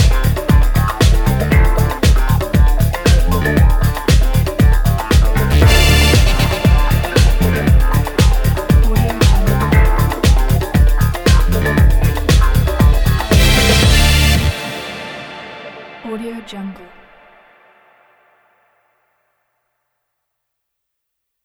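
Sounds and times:
upbeat energetic Miami sport funk music: 0.0s - 17.0s.

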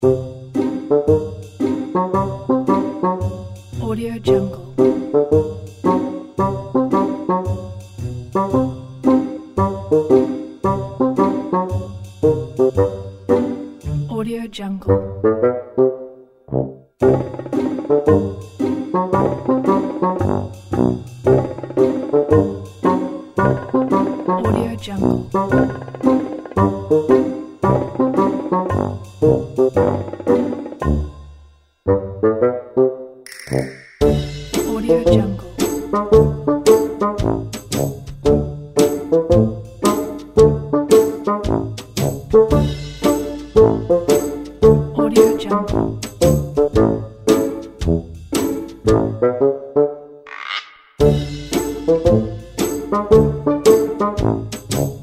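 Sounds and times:
funny clumsy comedy music: 0.0s - 14.3s, 14.9s - 55.0s.

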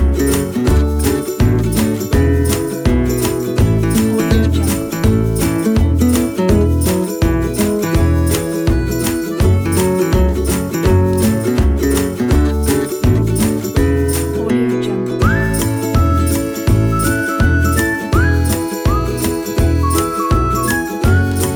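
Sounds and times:
folk ukulele: 0.0s - 21.5s
folk whistle: 15.2s - 21.5s.

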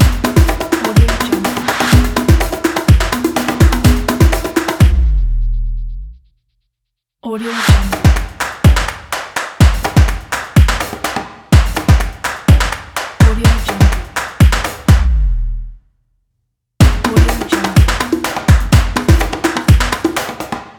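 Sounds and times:
drums: 0.0s - 5.2s, 7.7s - 15.2s, 16.8s - 20.6s.

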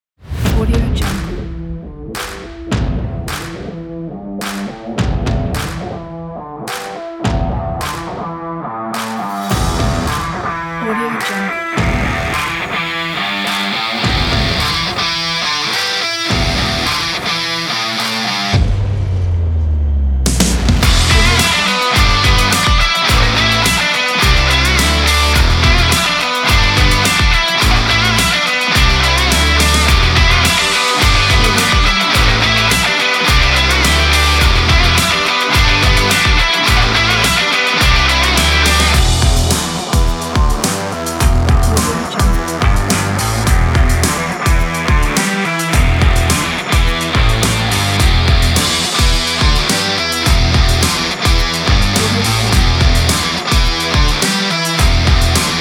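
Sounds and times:
action garage rock music: 0.3s - 55.5s.

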